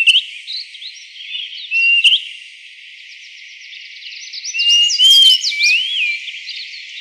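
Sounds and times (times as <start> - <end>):
greater pewee calling with slurred whistles: 0.0 - 0.3, 1.3 - 2.2, 4.4 - 6.4.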